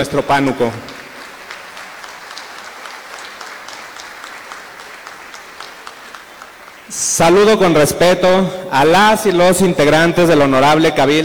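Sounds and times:
speech: 0:00.0 - 0:00.9, 0:06.9 - 0:11.2
audience applause: 0:00.0 - 0:10.9.

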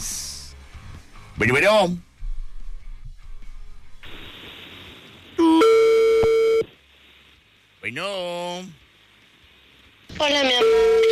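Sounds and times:
speech: 0:01.4 - 0:02.1, 0:07.8 - 0:08.8, 0:10.2 - 0:11.0
telephone beep sequence: 0:05.4 - 0:06.6, 0:10.6 - 0:11.0
telephone line tone: 0:05.4 - 0:06.7, 0:10.5 - 0:11.0.

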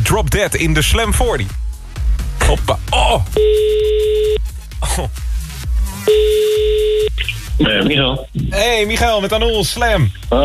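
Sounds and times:
thumping music beat: 0:00.0 - 0:10.4
speech: 0:00.1 - 0:01.7, 0:02.5 - 0:05.3, 0:06.0 - 0:06.6, 0:07.2 - 0:10.4
telephone ringback tones of outgoing call: 0:03.4 - 0:04.4, 0:06.1 - 0:07.2.

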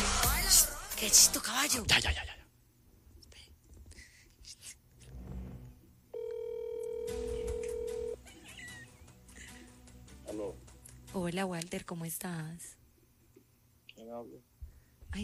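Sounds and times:
speech: 0:00.5 - 0:02.4, 0:10.4 - 0:12.8, 0:14.0 - 0:14.5
telephone call buzzy electronic ring tone: 0:06.1 - 0:08.2.

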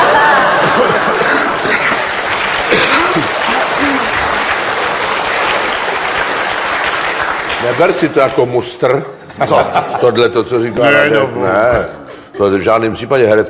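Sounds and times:
laughter: 0:00.0 - 0:05.3, 0:09.2 - 0:10.6
theatre audience applause: 0:00.0 - 0:08.5
speech: 0:07.8 - 0:13.4.

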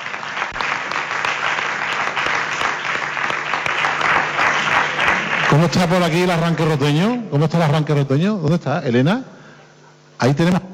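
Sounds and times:
crowd clapping: 0:00.0 - 0:07.4
speech: 0:05.5 - 0:09.3, 0:10.2 - 0:10.7.

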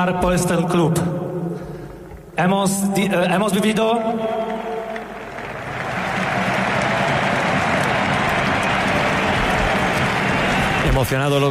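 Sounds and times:
speech: 0:00.0 - 0:01.2, 0:02.4 - 0:04.5, 0:10.8 - 0:11.4
large stadium crowd applauding at Camp Nou: 0:04.4 - 0:11.4.

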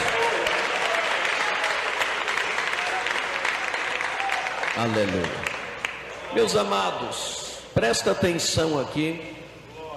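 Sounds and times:
audience clapping hands: 0:00.0 - 0:06.2
speech: 0:04.8 - 0:05.5, 0:06.3 - 0:09.4.

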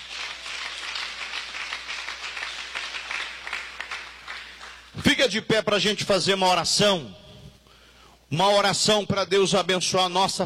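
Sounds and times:
audience applause: 0:00.0 - 0:04.9
speech: 0:05.1 - 0:07.2, 0:08.3 - 0:10.4.

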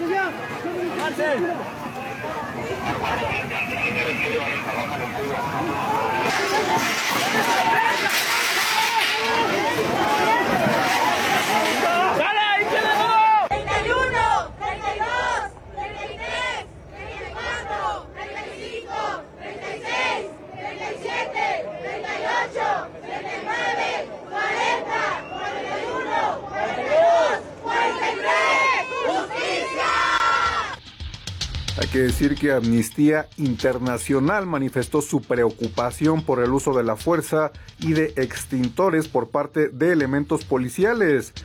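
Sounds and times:
dense loud roar of many voices: 0:00.0 - 0:30.8
protesters chanting slogans at a demonstration over violence and disappearances: 0:00.0 - 0:30.8
speech: 0:01.1 - 0:08.4, 0:31.9 - 0:41.4.

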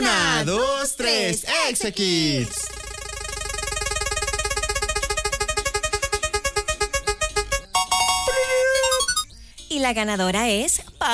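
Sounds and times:
speech: 0:00.4 - 0:02.8, 0:09.8 - 0:11.1
prize roulette spinning sound effect: 0:02.6 - 0:09.3.

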